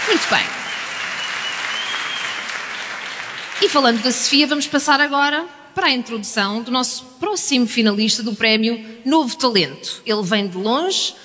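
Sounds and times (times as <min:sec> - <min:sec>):
audience applause for a singer at a new-talent award night: 0:00.0 - 0:04.4
speech: 0:00.1 - 0:00.6, 0:03.6 - 0:11.2.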